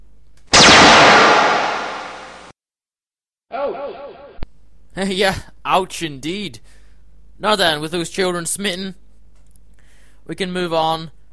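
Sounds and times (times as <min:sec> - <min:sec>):
laser weapon sound effect firing: 0:00.5 - 0:02.5
warbling effect: 0:00.6 - 0:02.5
speech: 0:05.0 - 0:06.8, 0:07.4 - 0:09.0, 0:10.3 - 0:11.2.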